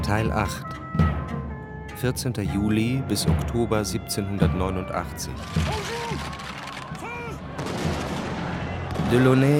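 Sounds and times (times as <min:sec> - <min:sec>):
speech: 0:00.1 - 0:01.0, 0:02.0 - 0:06.4, 0:09.1 - 0:09.5
people shouting: 0:05.4 - 0:07.7
gunfire as the Bastille's defenders shoot at attackers in 1789: 0:05.4 - 0:09.5.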